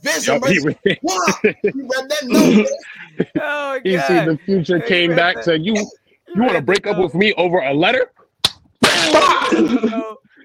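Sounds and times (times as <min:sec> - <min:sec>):
speech: 0:00.0 - 0:08.2, 0:09.0 - 0:10.2
laughter: 0:00.3 - 0:06.8, 0:09.0 - 0:10.3
slap across the face in a cartoon fight: 0:08.4 - 0:09.2.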